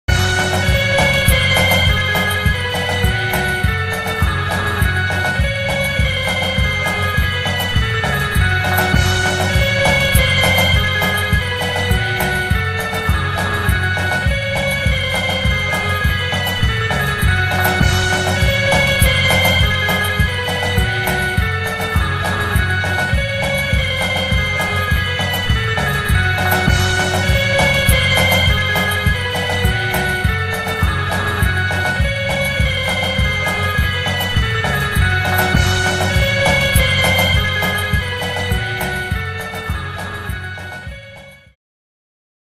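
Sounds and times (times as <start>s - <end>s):
scary music: 0.1s - 41.4s.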